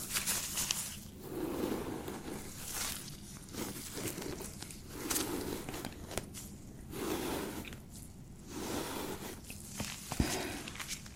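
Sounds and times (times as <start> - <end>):
beard treatment scratchy rustling strokes: 0.1 - 6.3, 6.9 - 7.9, 8.5 - 11.0.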